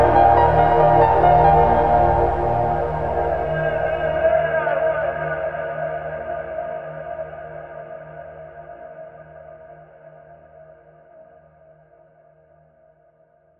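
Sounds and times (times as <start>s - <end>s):
ambient music: 0.0s - 5.2s.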